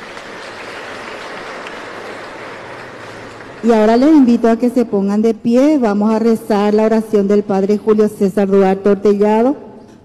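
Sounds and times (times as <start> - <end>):
audience applause: 0.0 - 3.6
speech: 3.6 - 9.6.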